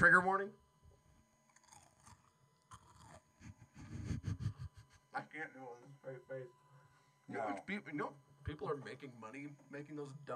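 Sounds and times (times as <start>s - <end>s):
speech: 0.0s - 0.6s, 5.2s - 6.6s, 7.3s - 10.3s
crunchy snacks being chewed a handful at a time: 1.5s - 3.2s.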